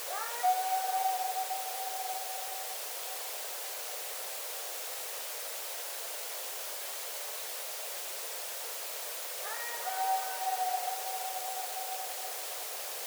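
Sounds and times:
howl attributed to bigfoot in Colorado: 0.1s - 3.7s, 9.4s - 13.0s.

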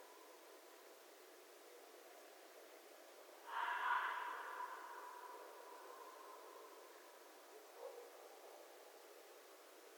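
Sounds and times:
red fox raspy scream: 3.5s - 5.4s.

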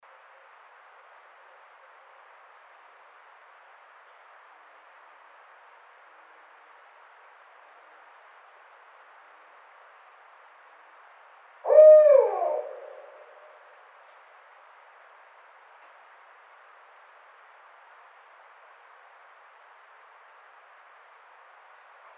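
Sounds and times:
barred owl hooting: 11.7s - 13.5s.

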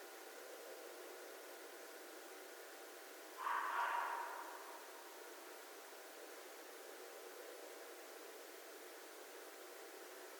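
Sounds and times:
red fox giving harsh rasping screams: 3.4s - 4.6s.

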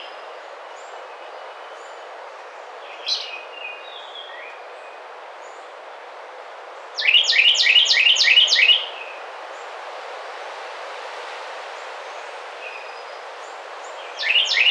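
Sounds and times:
Carolina wren ringing song: 6.9s - 9.7s, 12.1s - 14.6s.

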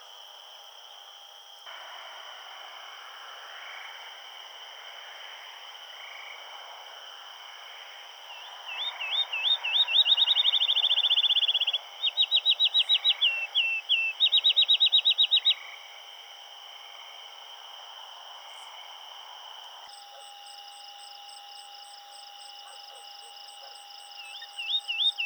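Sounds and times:
field sparrow singing: 8.7s - 15.5s, 22.6s - 25.2s.

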